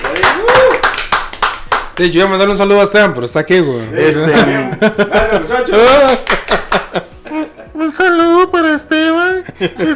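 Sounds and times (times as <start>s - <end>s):
clapping in studio: 0.0s - 2.2s, 5.8s - 7.0s
speech: 2.0s - 7.1s, 7.9s - 9.9s
laughter: 4.1s - 7.9s, 9.4s - 9.9s.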